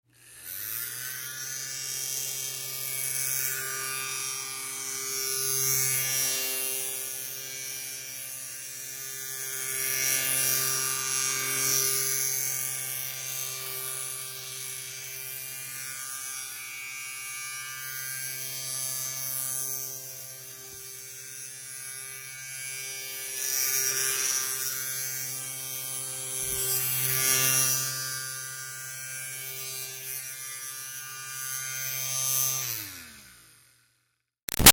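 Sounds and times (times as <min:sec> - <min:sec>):
small handheld fan moving slowly: 0:00.0 - 0:34.7.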